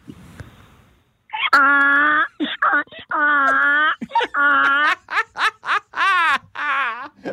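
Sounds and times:
person imitating a donkey bray: 1.3s - 4.9s
laughter: 2.0s - 7.3s.

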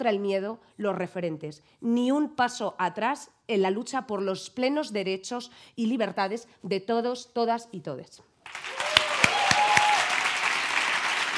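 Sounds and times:
speech: 0.0s - 8.8s
person applauding herself: 8.5s - 11.3s.

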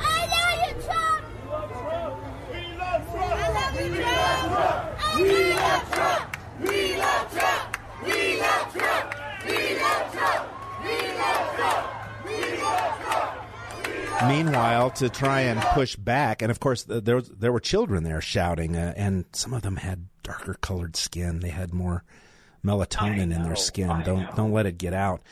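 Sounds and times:
crowd cheering: 0.0s - 16.0s
speech: 14.9s - 25.3s.

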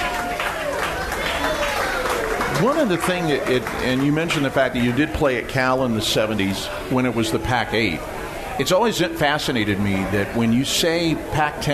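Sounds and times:
crowd applauding: 0.0s - 6.5s
speech: 2.6s - 11.7s.

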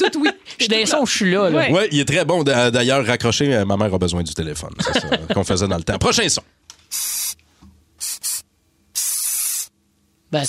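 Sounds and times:
speech: 0.1s - 7.2s
laughter: 4.8s - 6.0s
hairspray being sprayed from can: 6.9s - 7.4s, 8.0s - 9.8s.

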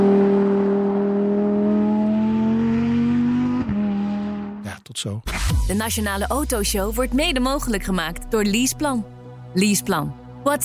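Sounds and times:
Lamborghini Huracan Technica engine revving: 0.0s - 4.8s
speech: 5.0s - 10.6s.

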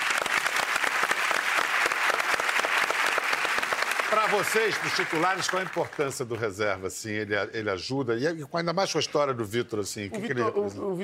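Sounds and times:
audience applause: 0.0s - 6.3s
speech: 4.1s - 11.0s.

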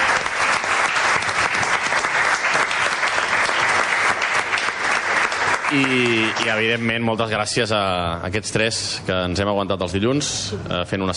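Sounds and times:
audience applause: 0.0s - 7.0s
speech: 5.7s - 11.1s.

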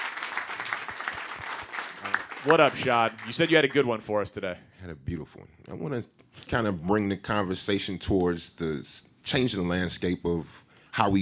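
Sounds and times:
crowd applauding: 0.0s - 3.9s
speech: 2.4s - 11.2s.

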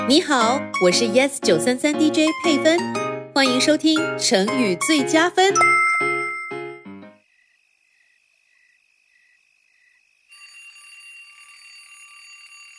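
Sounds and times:
speech: 0.1s - 5.8s
bell chiming: 5.6s - 6.8s, 10.3s - 12.7s.

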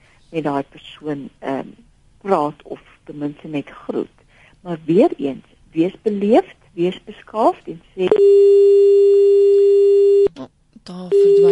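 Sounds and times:
speech: 0.3s - 8.9s, 10.8s - 11.5s
telephone line tone after a call drops: 8.1s - 10.3s, 11.1s - 11.5s.

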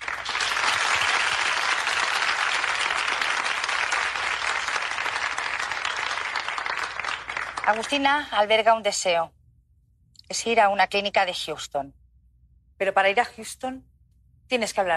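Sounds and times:
audience applause: 0.0s - 7.9s
speech: 7.7s - 9.4s, 10.3s - 12.0s, 12.8s - 13.9s, 14.5s - 14.9s.

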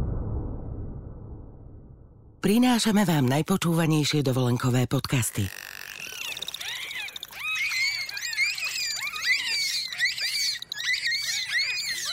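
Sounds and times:
speech: 2.4s - 5.6s
bottlenose dolphins squeaking and chattering: 4.7s - 12.1s.

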